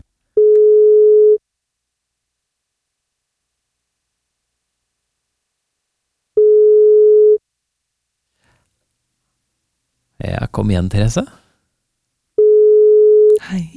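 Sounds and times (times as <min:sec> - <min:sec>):
telephone ringback tone: 0:00.4 - 0:01.4, 0:06.4 - 0:07.4, 0:12.4 - 0:13.4
speech: 0:10.3 - 0:11.4.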